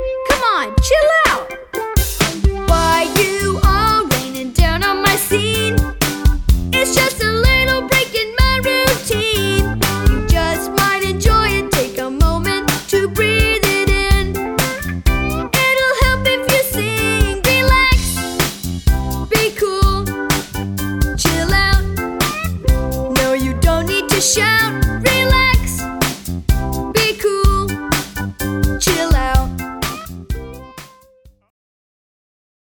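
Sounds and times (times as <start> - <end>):
relaxing chill-out music with spoken words: 0.0 - 26.1, 26.7 - 31.0.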